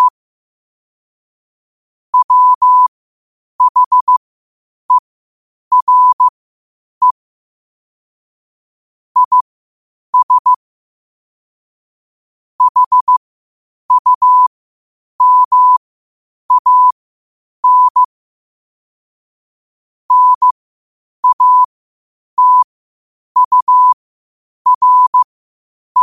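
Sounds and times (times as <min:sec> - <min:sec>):
morse code at 5 wpm: 0:02.2 - 0:02.9, 0:03.6 - 0:04.2, 0:05.7 - 0:06.3, 0:09.2 - 0:09.4, 0:10.2 - 0:10.6, 0:12.6 - 0:13.2, 0:13.9 - 0:14.5, 0:15.2 - 0:15.8, 0:16.5 - 0:17.0, 0:17.6 - 0:18.1, 0:20.1 - 0:20.6, 0:21.2 - 0:21.7, 0:22.4 - 0:22.6, 0:23.4 - 0:24.0, 0:24.7 - 0:25.3.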